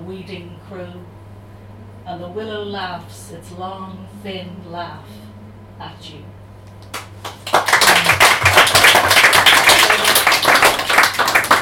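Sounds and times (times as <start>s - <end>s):
speech: 0.1s - 1.2s, 2.0s - 6.4s
audience clapping after a poem: 6.8s - 11.5s.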